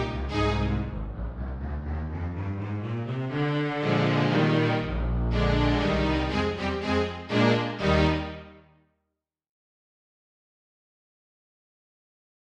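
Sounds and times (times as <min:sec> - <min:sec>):
MIDI quartet of four double basses playing: 0:00.0 - 0:08.2.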